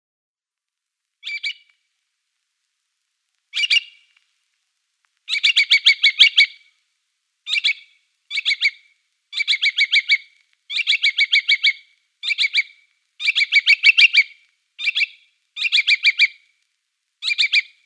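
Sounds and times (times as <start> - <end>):
little curlew calls: 1.2 - 1.8, 3.5 - 4.2, 5.3 - 6.7, 7.5 - 16.5, 17.2 - 17.8.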